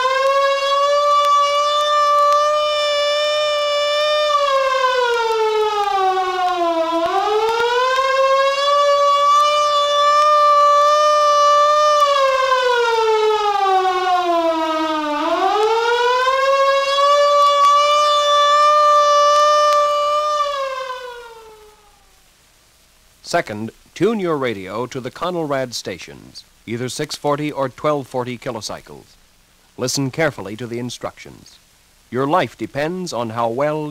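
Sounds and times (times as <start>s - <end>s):
civil defense take-cover signal wailing siren from a 1961 survival recording: 0.0s - 22.2s
speech: 23.4s - 29.2s, 29.8s - 33.9s.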